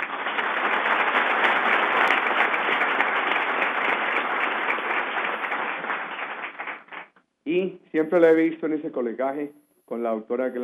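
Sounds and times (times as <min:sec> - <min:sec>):
audience applause: 0:00.0 - 0:07.1
speech: 0:07.5 - 0:10.6.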